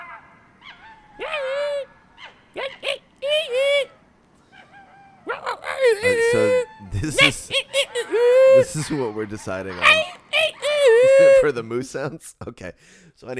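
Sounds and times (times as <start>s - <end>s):
monkeys calling: 0.0s - 11.8s
laughter: 5.6s - 11.7s
speech: 6.0s - 7.8s, 8.8s - 10.2s, 11.2s - 13.3s.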